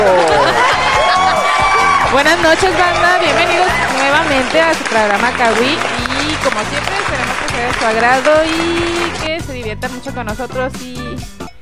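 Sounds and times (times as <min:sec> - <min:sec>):
laughter: 0:00.0 - 0:07.5
audience applause: 0:00.0 - 0:09.4
speech: 0:02.2 - 0:07.0, 0:07.6 - 0:11.3.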